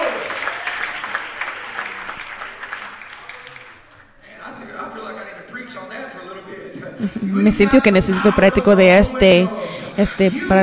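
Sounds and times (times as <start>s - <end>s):
audience applause: 0.0s - 4.2s
laughter: 6.8s - 10.6s
speech: 7.0s - 10.6s.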